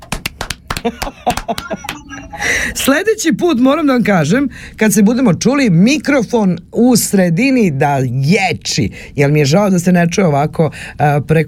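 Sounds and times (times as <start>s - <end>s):
small audience giving scattered applause: 0.0s - 2.1s
laughter: 0.7s - 3.2s
speech: 0.8s - 11.4s.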